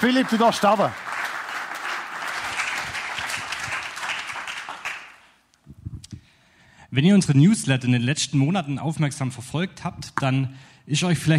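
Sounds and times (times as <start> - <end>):
speech: 0.0 - 1.1, 6.9 - 11.3
audience applause: 0.0 - 5.3.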